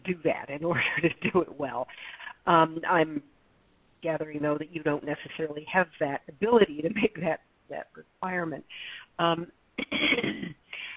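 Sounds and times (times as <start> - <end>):
speech: 0.1 - 3.3, 4.0 - 10.6
person with allergies clearing their throat and coughing: 9.8 - 10.6.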